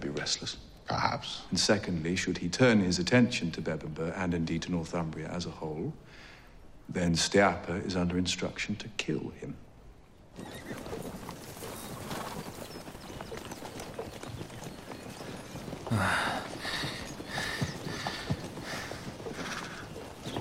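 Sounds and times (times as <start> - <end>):
speech: 0.2 - 6.3, 6.9 - 9.7, 10.4 - 11.2, 15.9 - 16.5
horse hooves clip-clopping during a long ride: 10.3 - 20.4.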